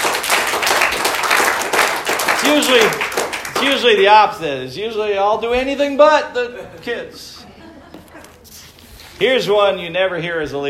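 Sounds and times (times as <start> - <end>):
applause: 0.0 - 4.1
speech: 2.5 - 7.4, 9.2 - 10.6
laughter: 6.3 - 8.6.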